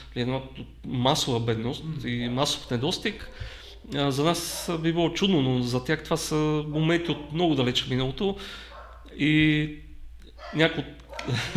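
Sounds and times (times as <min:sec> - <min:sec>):
speech: 0:00.2 - 0:11.5
dog barking: 0:03.2 - 0:04.8, 0:08.7 - 0:09.1, 0:10.4 - 0:11.4
laughter: 0:11.2 - 0:11.5.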